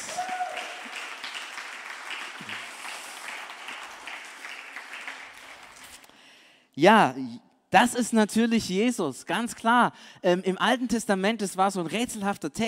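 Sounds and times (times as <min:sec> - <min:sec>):
audience applause: 0:00.0 - 0:06.0
speech: 0:06.8 - 0:12.6.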